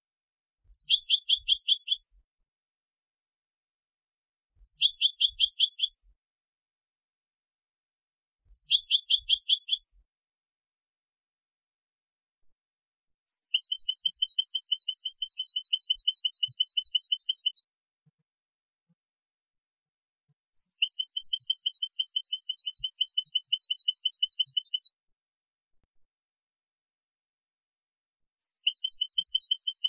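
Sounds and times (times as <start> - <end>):
European goldfinch twittering: 4.6 - 6.0, 8.6 - 9.9, 13.3 - 17.6, 20.6 - 24.9, 28.4 - 29.8.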